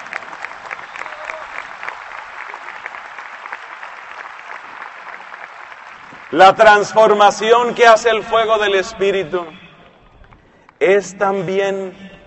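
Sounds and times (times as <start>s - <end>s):
large audience applause: 0.0s - 7.2s
speech: 6.3s - 9.6s, 10.8s - 12.0s.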